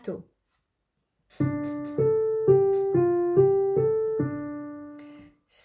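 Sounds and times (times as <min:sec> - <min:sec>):
alto singing a mass movement: 0:01.4 - 0:05.2.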